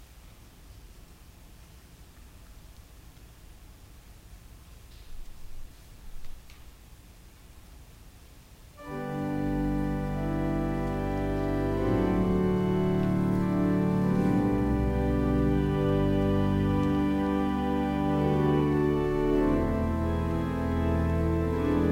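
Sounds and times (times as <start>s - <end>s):
organ music: 8.8s - 21.9s.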